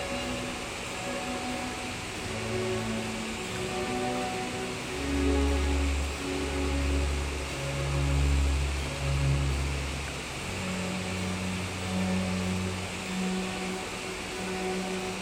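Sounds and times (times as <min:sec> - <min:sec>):
waterfall: 0:00.0 - 0:15.1.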